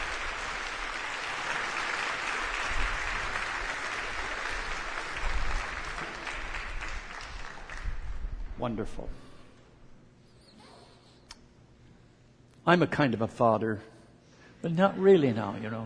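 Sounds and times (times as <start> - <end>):
crowd applause: 0.0 - 8.2
speech: 8.6 - 9.3, 12.7 - 13.9, 14.6 - 15.8.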